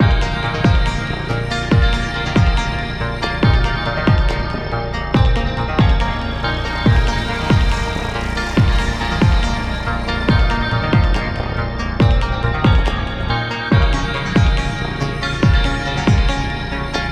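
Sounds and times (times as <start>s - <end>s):
dark cybernetic cityscape sound: 0.0s - 17.0s.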